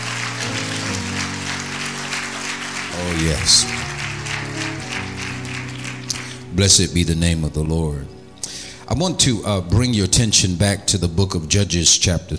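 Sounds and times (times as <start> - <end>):
audience clapping hands: 0.0 - 7.0
speech: 3.0 - 3.8, 6.6 - 8.2, 8.9 - 12.3.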